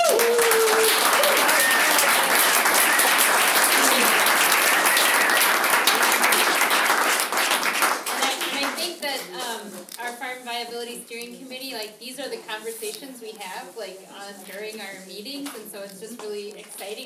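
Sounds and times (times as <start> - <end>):
crowd applauding: 0.0 - 8.9
speech: 11.9 - 17.0.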